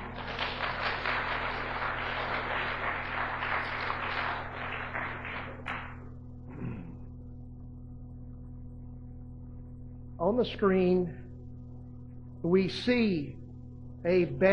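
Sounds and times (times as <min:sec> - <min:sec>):
audience clapping in praise: 0:00.0 - 0:06.2
low steady hum: 0:00.0 - 0:14.5
speech: 0:10.2 - 0:11.2, 0:12.4 - 0:13.4, 0:14.0 - 0:14.5.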